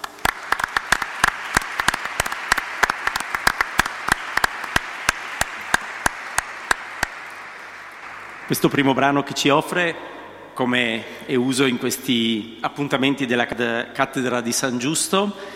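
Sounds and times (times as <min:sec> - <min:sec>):
audience applause: 0:00.0 - 0:09.4
speech: 0:08.5 - 0:15.5.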